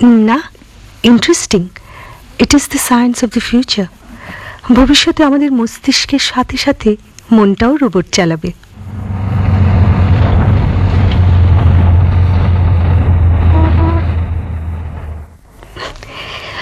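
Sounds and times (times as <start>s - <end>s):
speech: 0.0s - 1.8s, 2.4s - 8.6s
arriving bus engine rumble: 8.6s - 16.5s.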